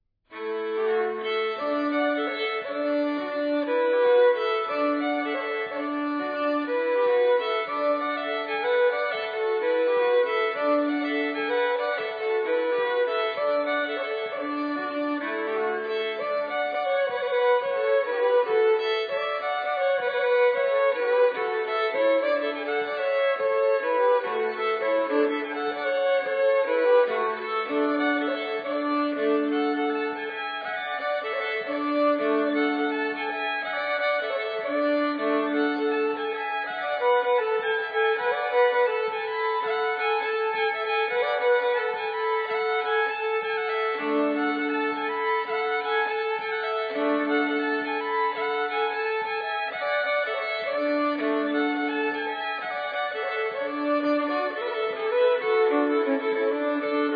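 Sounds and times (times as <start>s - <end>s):
springar fiddle tune: 0.2s - 57.1s.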